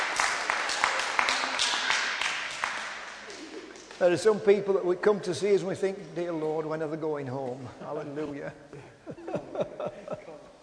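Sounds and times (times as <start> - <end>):
audience clapping: 0.0 - 4.1
speech: 4.0 - 8.9
laughter: 8.0 - 10.6.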